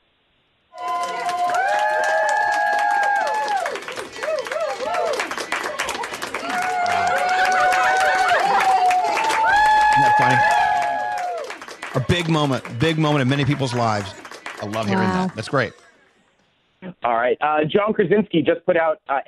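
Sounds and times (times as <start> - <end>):
people cheering and whooping: 0.8 - 15.8
healthcare workers applauding: 0.8 - 15.9
laughter: 3.9 - 9.3, 11.8 - 16.1, 16.8 - 19.2
speech: 12.1 - 15.8, 17.0 - 19.2.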